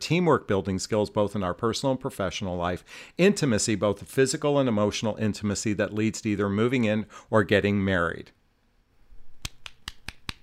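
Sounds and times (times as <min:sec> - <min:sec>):
speech: 0:00.1 - 0:08.4
hand clap: 0:09.4 - 0:10.4.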